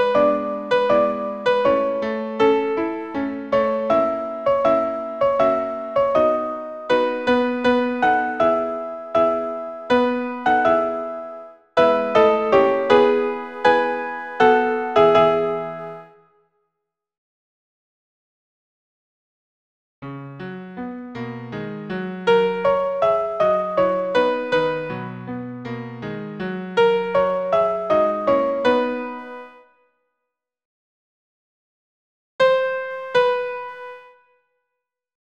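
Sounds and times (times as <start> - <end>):
soprano piano accompaniment: 0.0 - 16.2, 20.0 - 29.6, 32.4 - 34.1.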